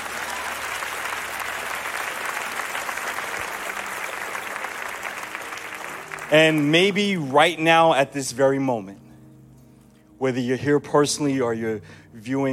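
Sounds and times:
audience applause: 0.0s - 7.6s
speech: 6.3s - 9.0s, 10.2s - 12.5s.

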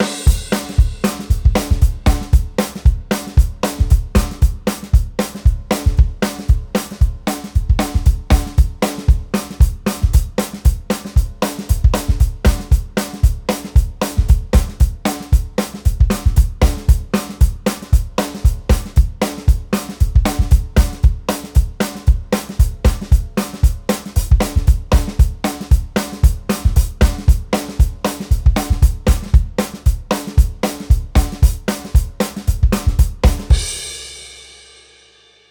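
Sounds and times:
fast two-beat music: 0.0s - 34.1s.

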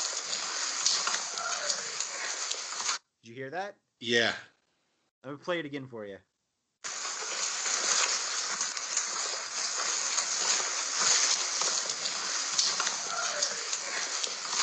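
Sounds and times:
heavy, clumping footsteps: 0.0s - 3.0s, 6.8s - 14.6s
constant broad hiss of noise: 0.0s - 4.4s, 6.8s - 14.6s
speech: 3.3s - 4.5s, 5.2s - 6.3s.

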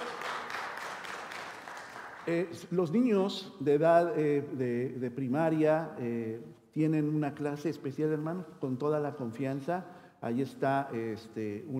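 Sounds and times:
audience applause: 0.0s - 2.3s
speech: 2.3s - 11.7s.

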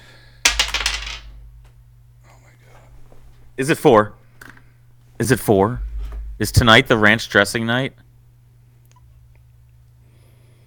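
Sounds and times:
low steady hum: 0.0s - 10.2s
die dropping off a desk and clattering: 0.5s - 1.7s, 5.8s - 7.0s
speech: 3.6s - 4.2s, 5.2s - 8.0s.

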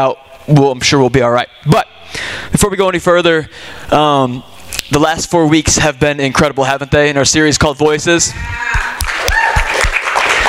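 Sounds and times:
speech: 0.0s - 9.1s
audience clapping: 8.6s - 10.4s.

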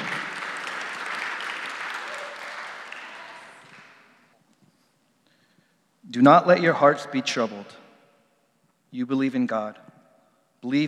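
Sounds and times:
audience applause: 0.0s - 4.3s
speech: 6.1s - 7.8s, 8.9s - 9.9s, 10.6s - 10.8s.

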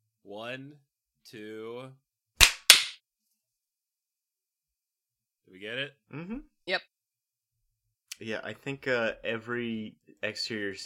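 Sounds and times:
speech: 0.3s - 2.0s, 5.5s - 6.9s, 8.2s - 10.8s
hand claps: 2.4s - 3.0s.

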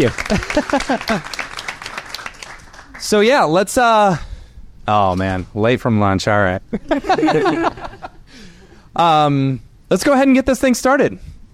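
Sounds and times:
speech: 0.0s - 1.4s, 3.0s - 8.1s, 9.0s - 11.5s
laughter: 0.0s - 1.6s, 6.7s - 8.6s
audience applause: 0.0s - 3.1s.

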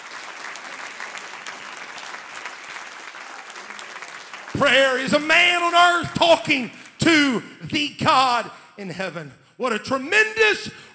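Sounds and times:
crowd clapping hands: 0.0s - 5.7s
speech: 4.6s - 10.9s.

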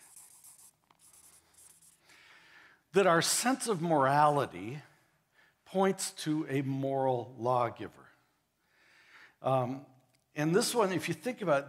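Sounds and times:
pen scratching as an arrow is drawn: 0.0s - 2.0s
speech: 3.0s - 4.9s, 5.7s - 8.1s, 9.4s - 11.6s.

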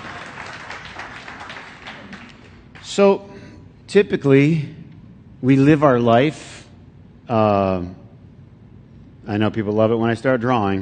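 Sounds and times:
audience clapping: 0.0s - 3.0s
speech: 2.9s - 3.3s, 3.9s - 4.8s, 5.4s - 6.5s, 7.3s - 8.0s, 9.3s - 10.7s.

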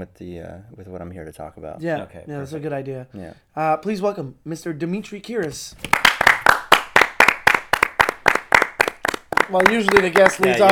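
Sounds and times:
speech: 0.0s - 6.3s, 9.5s - 10.6s
person clapping hands welcoming guest: 5.8s - 10.6s.

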